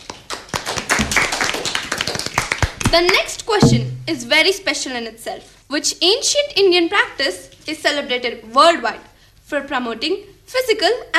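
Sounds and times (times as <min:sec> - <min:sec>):
small audience clapping for a quiz contestant: 0:00.0 - 0:03.5
speech: 0:02.9 - 0:11.1.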